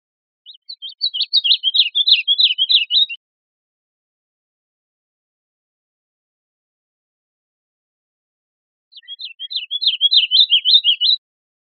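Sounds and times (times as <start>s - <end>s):
bird chirping: 0.4s - 3.2s, 8.9s - 11.2s.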